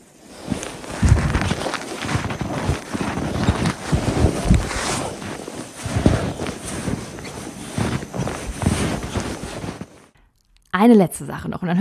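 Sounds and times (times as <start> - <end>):
footsteps crunching through very cold powder-dry snow: 0.2 - 10.1
wind rumbling on the microphone: 0.4 - 9.9
speech: 10.8 - 11.8.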